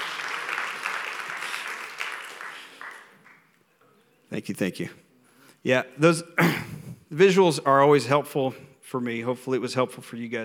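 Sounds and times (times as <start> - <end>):
audience applause: 0.0 - 3.5
speech: 4.3 - 5.0, 5.6 - 10.4.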